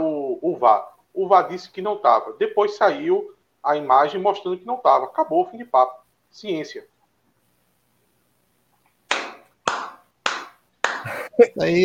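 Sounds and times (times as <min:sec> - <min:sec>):
speech: 0:00.6 - 0:06.9, 0:11.4 - 0:11.8
hand clapping: 0:09.1 - 0:11.3.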